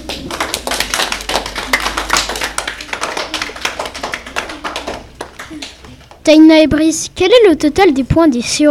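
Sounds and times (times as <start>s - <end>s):
clapping: 0.0s - 6.2s
speech: 6.3s - 8.6s.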